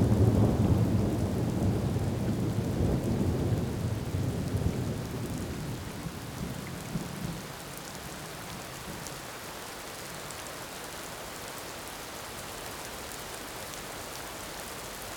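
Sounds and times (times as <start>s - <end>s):
evening thunder: 0.0s - 5.8s
evening rain: 0.0s - 15.1s.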